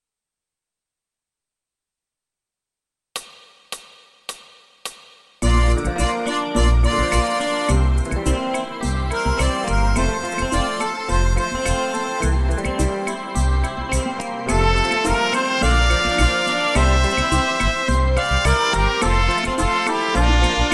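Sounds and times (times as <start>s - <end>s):
accordion playing tutti: 5.4s - 20.7s.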